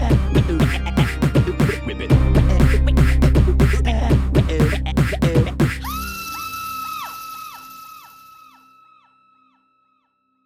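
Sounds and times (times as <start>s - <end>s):
spooky instrumental music mix: 0.0s - 7.4s.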